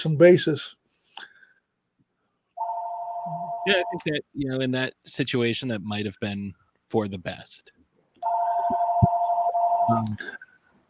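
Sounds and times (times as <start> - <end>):
speech: 0.0 - 0.8, 3.3 - 7.8, 9.9 - 10.4
electronic phone ringing: 2.6 - 4.0, 8.2 - 10.0.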